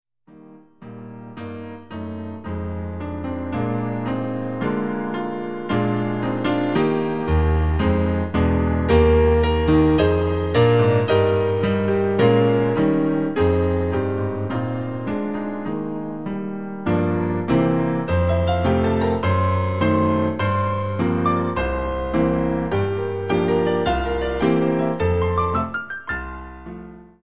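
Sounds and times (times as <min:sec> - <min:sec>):
hymn played on piano: 0:00.8 - 0:27.2.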